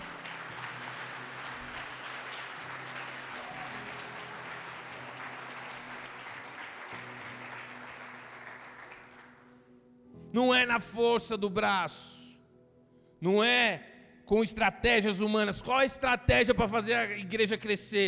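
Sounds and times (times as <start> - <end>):
audience applause: 0.0 - 9.5
speech: 10.4 - 12.1, 13.2 - 18.0.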